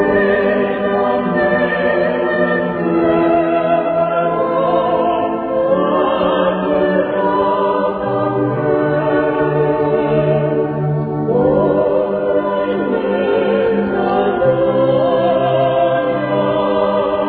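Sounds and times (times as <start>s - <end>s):
soloists singing in chorus: 0.0s - 17.2s.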